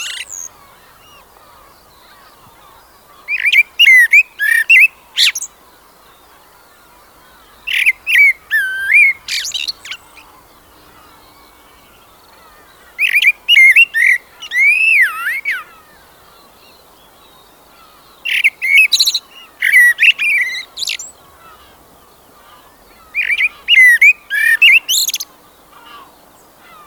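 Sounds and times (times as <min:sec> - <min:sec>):
common blackbird song phrases: 0:00.0 - 0:26.8.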